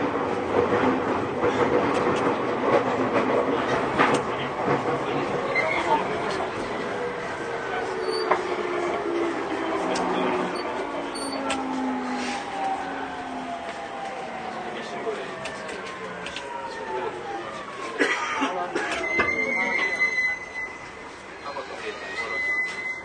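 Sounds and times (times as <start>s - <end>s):
JR 209 series train rumbling: 0.0s - 23.0s
thin high squeal: 19.2s - 23.0s.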